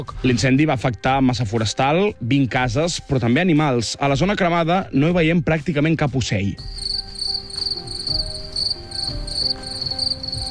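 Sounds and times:
speech: 0:00.0 - 0:08.4
crickets chirping in burned forest: 0:06.6 - 0:10.4.

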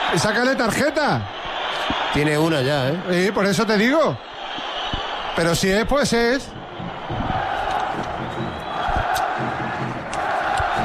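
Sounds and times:
speech: 0:00.1 - 0:04.3, 0:05.4 - 0:06.6
stadium crowd chanting a team name: 0:06.6 - 0:10.8.

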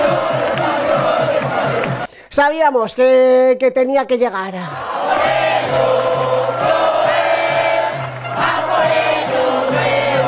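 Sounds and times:
crowd chanting: 0:00.0 - 0:02.1, 0:04.7 - 0:10.2
speech: 0:02.3 - 0:04.9, 0:05.7 - 0:06.1.

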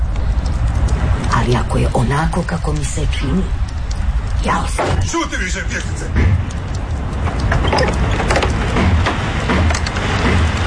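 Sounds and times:
wind roaring: 0:00.0 - 0:10.6
speech: 0:01.5 - 0:03.6, 0:04.4 - 0:06.5
knocks and rattles: 0:06.2 - 0:10.6.

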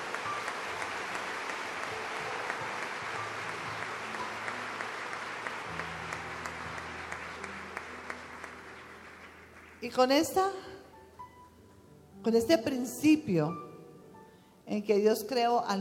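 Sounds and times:
audience applauding: 0:00.0 - 0:10.0
speech: 0:09.8 - 0:10.6, 0:12.2 - 0:13.7, 0:14.7 - 0:15.7.

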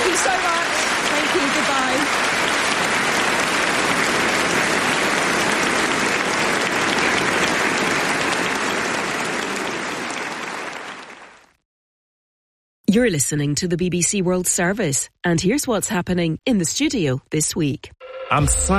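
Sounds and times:
audience applause: 0:00.0 - 0:11.6
speech: 0:13.0 - 0:18.7.

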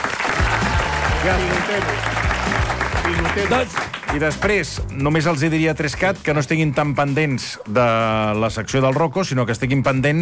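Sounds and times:
audience applause: 0:00.0 - 0:04.7
speech: 0:01.2 - 0:02.2, 0:03.1 - 0:10.2.

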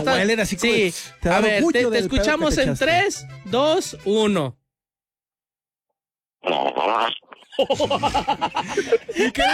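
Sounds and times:
speech: 0:00.0 - 0:04.6, 0:06.4 - 0:09.5
mouth fart imitation: 0:06.4 - 0:07.6
laughter: 0:07.5 - 0:09.5.

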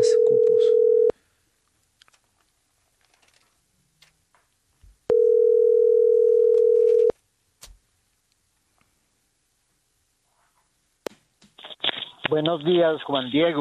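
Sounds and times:
telephone ringback tone during call: 0:00.0 - 0:01.1, 0:05.1 - 0:07.1
speech: 0:12.4 - 0:13.5.

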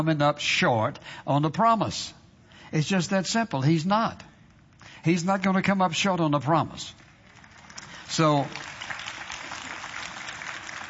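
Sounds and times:
speech: 0:00.0 - 0:04.3, 0:05.0 - 0:07.0, 0:08.1 - 0:08.7
sparse audience clapping during a sermon: 0:07.0 - 0:10.8.

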